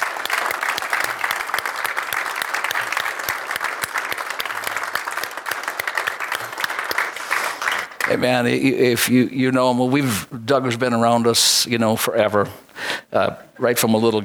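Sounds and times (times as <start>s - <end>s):
church congregation applauding: 0.0s - 8.5s
speech: 8.1s - 14.2s.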